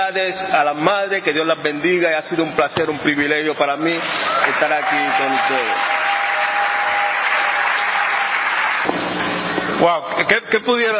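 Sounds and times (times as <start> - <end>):
speech: 0.0 - 6.0, 9.8 - 10.9
audience applause: 4.0 - 8.9.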